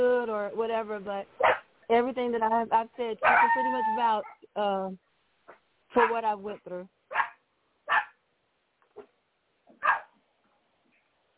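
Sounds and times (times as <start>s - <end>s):
speech: 0.5s - 7.2s
dog barking: 1.4s - 1.7s, 3.2s - 4.4s, 7.1s - 8.2s, 9.8s - 10.2s.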